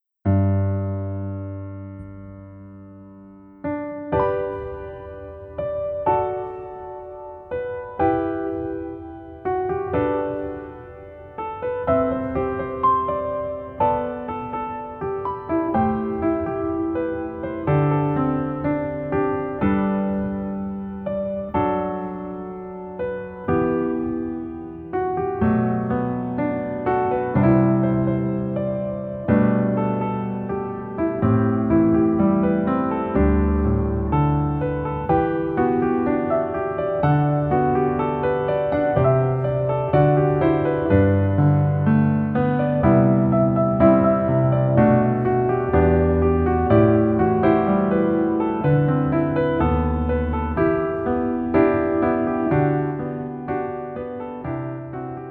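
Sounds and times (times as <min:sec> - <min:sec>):
piano melody backing track: 0:00.0 - 0:55.2.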